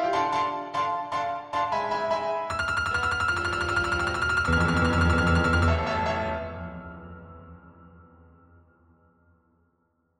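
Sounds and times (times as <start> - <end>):
fast playful piece with a slow melancholy middle: 0.1 - 7.2.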